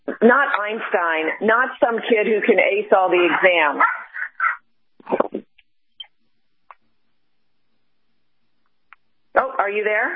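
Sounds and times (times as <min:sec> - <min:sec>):
speech: 0:00.2 - 0:04.0, 0:09.4 - 0:10.1
excited puppy yipping and whining: 0:03.8 - 0:04.6.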